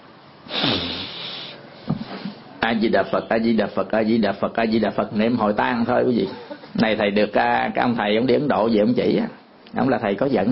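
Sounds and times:
long deep breath during Buddhist chanting practice: 0.5s - 2.4s
speech: 2.6s - 10.5s.

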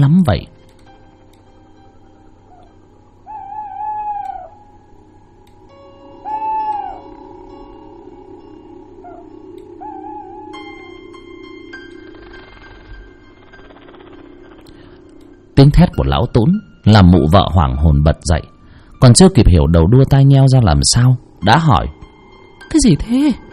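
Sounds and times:
speech: 0.0s - 0.6s, 15.6s - 22.0s, 22.7s - 23.4s
owl screeching eerily: 2.4s - 4.8s, 6.0s - 15.0s.

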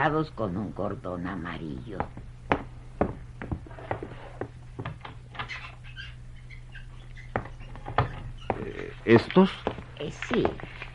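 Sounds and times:
speech: 0.0s - 2.3s, 9.1s - 10.7s
mice scurrying in a nest: 3.4s - 10.9s.

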